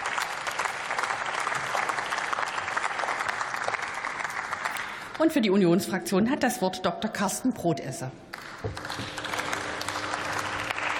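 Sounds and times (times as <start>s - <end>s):
parliament applause from a large crowd: 0.0s - 5.2s, 8.3s - 10.9s
speech: 5.2s - 9.2s.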